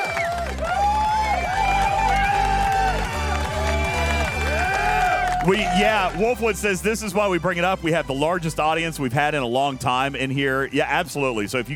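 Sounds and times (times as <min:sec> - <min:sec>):
applause button sound effect: 0:00.0 - 0:06.6
speech: 0:05.5 - 0:11.7.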